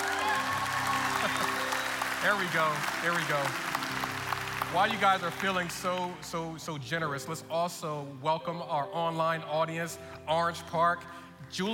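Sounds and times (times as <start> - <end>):
church congregation applauding: 0.0 - 6.7
speech: 2.2 - 3.7, 4.7 - 11.7.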